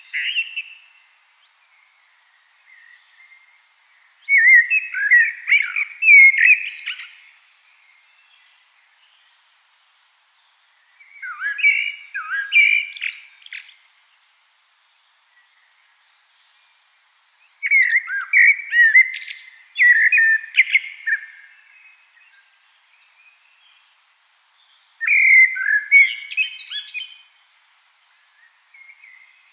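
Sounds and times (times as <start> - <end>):
common blackbird singing: 0.0 - 0.9, 4.2 - 7.6, 11.0 - 13.8, 17.6 - 22.5, 25.0 - 27.3.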